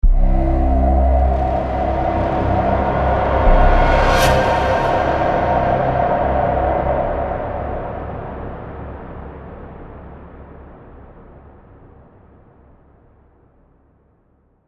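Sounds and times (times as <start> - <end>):
soundtrack stinger: 0.0 - 9.0.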